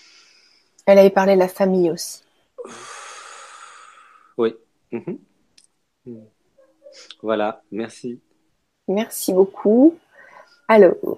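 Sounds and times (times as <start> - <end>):
deep breath: 0.0 - 0.8, 2.4 - 4.4, 10.0 - 10.7
speech: 0.9 - 2.9, 4.4 - 5.3, 6.0 - 6.3, 6.9 - 8.3, 8.9 - 10.0, 10.7 - 11.1.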